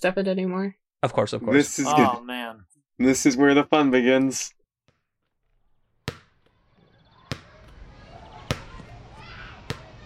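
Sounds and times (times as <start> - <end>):
speech: 0.0 - 4.6
ball banging against a shed wall: 6.0 - 6.6, 7.3 - 7.8, 9.7 - 9.9
low murmur of noise: 7.4 - 10.0.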